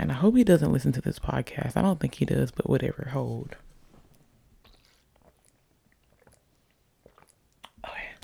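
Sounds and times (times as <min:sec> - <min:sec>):
speech: 0:00.2 - 0:03.7
person drinking water: 0:01.6 - 0:08.2
gulp and breathy swallow: 0:04.6 - 0:08.2.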